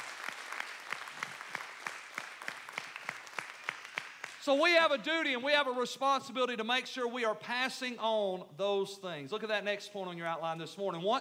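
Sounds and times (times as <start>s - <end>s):
audience applause: 0.0s - 4.4s
speech: 4.4s - 11.1s.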